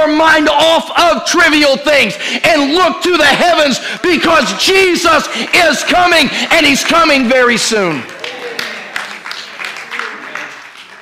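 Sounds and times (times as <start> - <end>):
speech: 0.1 - 8.2
audience clapping in steady unison rhythm: 3.7 - 11.0
dense crowd noise and voices: 7.8 - 11.0.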